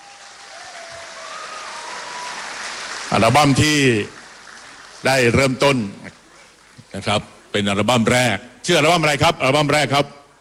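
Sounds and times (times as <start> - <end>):
audience applause: 0.0 - 7.2
speech: 3.1 - 4.2, 5.0 - 6.2, 6.9 - 10.2.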